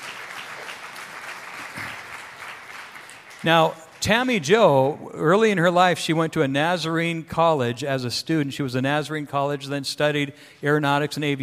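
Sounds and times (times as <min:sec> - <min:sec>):
audience clapping: 0:00.0 - 0:04.5
speech: 0:03.4 - 0:11.4.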